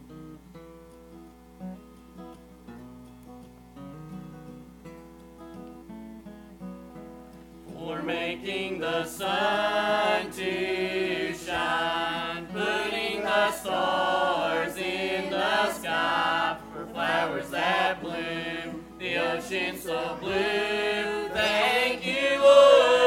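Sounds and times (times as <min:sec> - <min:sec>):
family singing: 0:07.8 - 0:23.0.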